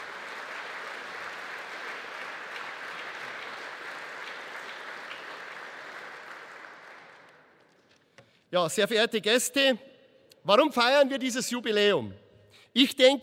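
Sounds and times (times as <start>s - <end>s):
audience applause: 0.0s - 7.6s
speech: 8.5s - 13.2s.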